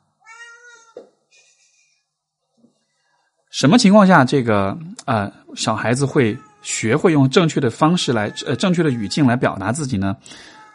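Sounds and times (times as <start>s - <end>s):
house cat meowing: 0.2s - 1.0s, 6.0s - 7.0s, 8.0s - 9.6s, 10.4s - 10.7s
speech: 3.6s - 10.6s.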